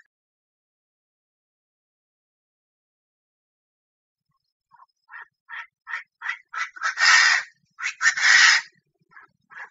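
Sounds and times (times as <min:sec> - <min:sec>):
Chinese francolin calling: 0:04.3 - 0:09.6.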